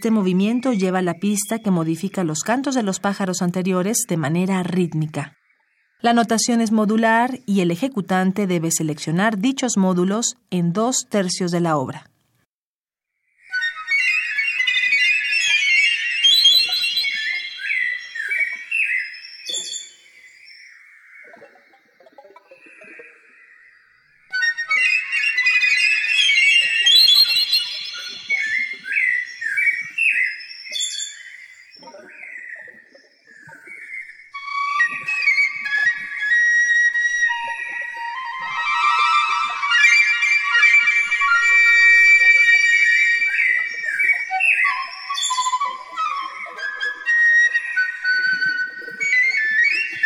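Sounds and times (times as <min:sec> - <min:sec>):
speech: 0:00.0 - 0:05.4, 0:06.0 - 0:12.1
piccolo flute with live electronics: 0:13.5 - 0:18.8, 0:24.3 - 0:29.4, 0:34.4 - 0:50.0.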